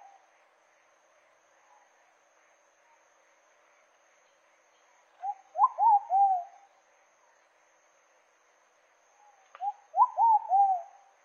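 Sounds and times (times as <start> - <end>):
pigeon cooing song: 5.3 - 6.5, 9.6 - 10.9.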